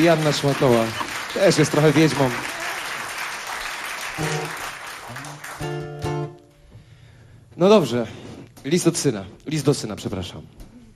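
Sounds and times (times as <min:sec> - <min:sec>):
speech: 0:00.0 - 0:02.6, 0:07.6 - 0:10.7
audience clapping: 0:00.0 - 0:06.5.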